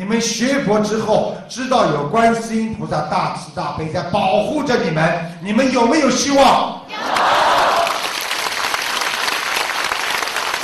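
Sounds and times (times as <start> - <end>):
speech: 0.1 - 7.3
crowd applause: 6.9 - 10.6.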